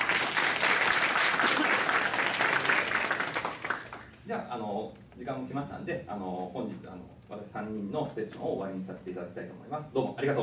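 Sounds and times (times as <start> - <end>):
audience applause: 0.0 - 4.2
speech: 4.3 - 10.4.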